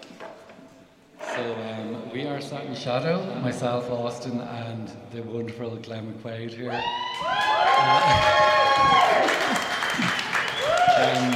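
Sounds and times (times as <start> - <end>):
speech: 1.4 - 10.2, 11.0 - 11.3
live audience whoops and shouting: 6.7 - 11.3
live audience clapping: 7.2 - 11.3.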